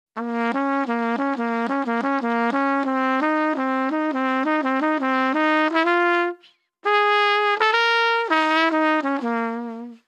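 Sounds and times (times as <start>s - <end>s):
trumpet: 0.2s - 10.0s.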